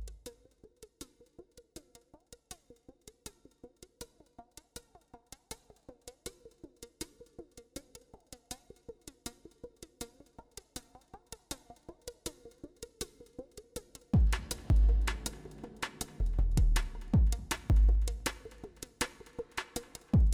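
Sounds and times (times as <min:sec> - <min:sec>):
drum train: 0:14.1 - 0:20.3.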